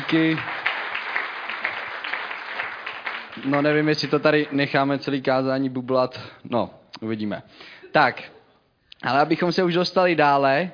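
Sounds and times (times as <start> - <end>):
audience applause for a professor: 0.0 - 5.0
speech: 0.1 - 0.6, 3.4 - 8.4, 9.0 - 10.7.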